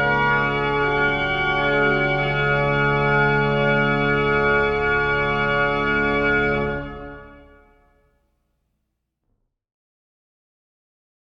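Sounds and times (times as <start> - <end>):
prelude in D major: 0.0 - 7.8.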